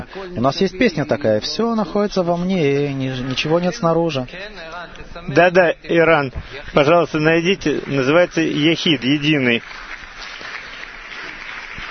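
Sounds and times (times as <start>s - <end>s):
speech: 0.1s - 10.3s
stormy applause from an audience at a Russian-language gathering: 6.8s - 11.8s.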